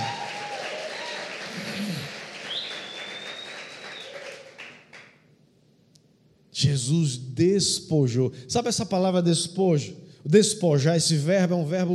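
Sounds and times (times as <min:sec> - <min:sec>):
audience applauding for Jesus: 0:00.0 - 0:05.2
long high whistle: 0:02.4 - 0:04.4
speech: 0:06.6 - 0:11.9.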